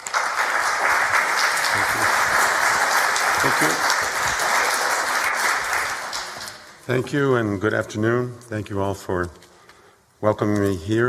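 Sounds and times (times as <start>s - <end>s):
audience applause welcoming author Thad Carhart: 0.0s - 6.8s
speech: 6.9s - 9.4s, 10.2s - 11.0s.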